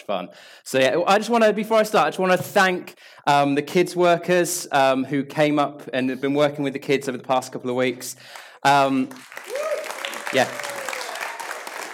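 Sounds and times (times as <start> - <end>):
speech: 0.0 - 9.6, 10.3 - 10.7
audience clapping: 8.3 - 11.9.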